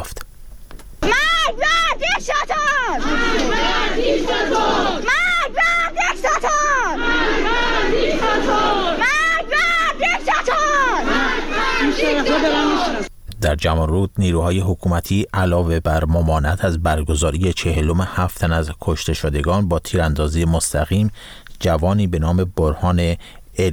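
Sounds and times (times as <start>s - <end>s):
scattered yells: 1.0s - 13.1s
protest crowd chanting slogans: 2.2s - 13.1s
speech: 12.0s - 23.7s.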